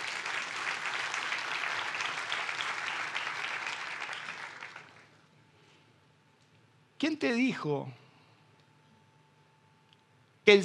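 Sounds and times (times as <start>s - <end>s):
audience applauding: 0.0s - 5.2s
speech: 7.0s - 8.0s, 10.5s - 10.6s.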